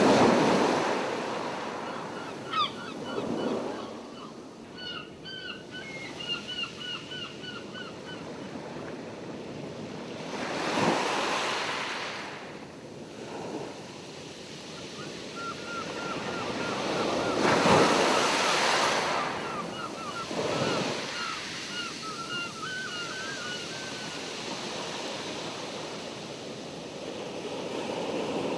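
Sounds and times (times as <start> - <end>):
ocean: 0.0 - 28.5
seagulls: 1.8 - 8.3, 15.0 - 24.2.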